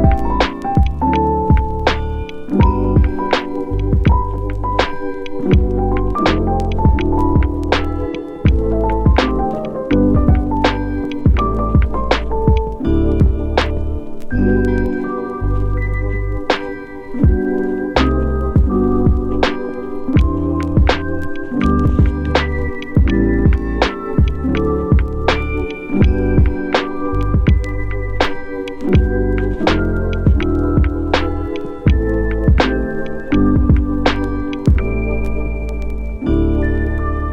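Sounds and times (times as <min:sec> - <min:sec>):
lo-fi instrumental music for working: 0:00.0 - 0:37.3.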